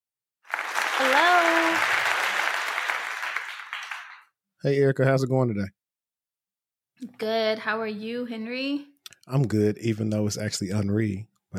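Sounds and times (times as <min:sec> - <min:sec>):
audience applause: 0:00.4 - 0:04.3
rising vocal cheer: 0:00.7 - 0:04.2
speech: 0:01.0 - 0:01.9, 0:04.6 - 0:05.8, 0:07.0 - 0:11.5.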